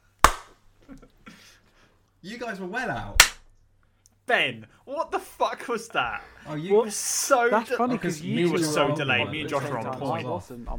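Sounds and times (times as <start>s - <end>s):
hand clap for sync: 0.0s - 0.6s, 3.2s - 3.4s
speech: 2.2s - 3.4s, 4.3s - 10.7s.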